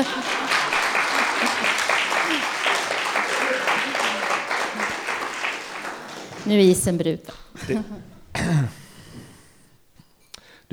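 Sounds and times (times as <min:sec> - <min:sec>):
applause: 0:00.0 - 0:07.4
laughter: 0:00.0 - 0:09.5
speech: 0:06.5 - 0:08.8.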